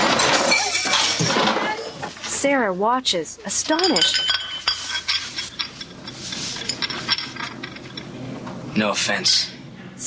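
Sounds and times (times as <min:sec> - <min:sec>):
people crashing across table into chairs: 0:00.0 - 0:02.2
speech: 0:02.4 - 0:04.4, 0:08.8 - 0:09.5.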